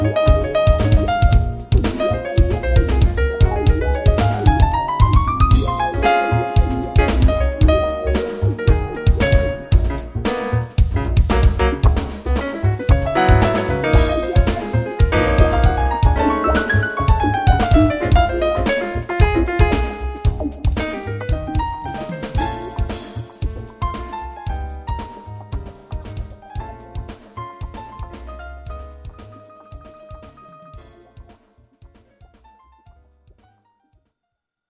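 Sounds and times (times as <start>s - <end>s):
jazz quartet playing: 0.0s - 29.5s.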